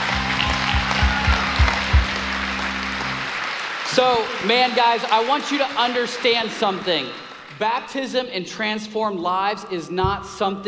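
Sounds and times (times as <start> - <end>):
audience applause: 0.0 - 7.6
speech: 4.0 - 10.6.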